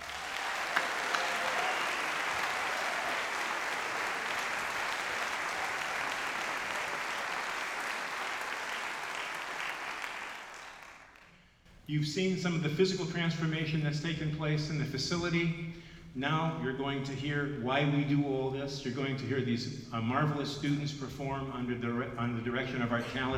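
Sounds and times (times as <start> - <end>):
audience applause: 0.0 - 11.4
speech: 11.9 - 23.3.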